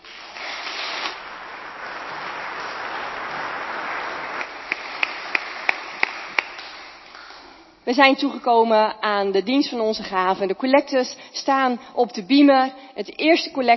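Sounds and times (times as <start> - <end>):
audience applause for the band: 1.2 - 7.4
speech: 7.9 - 13.7.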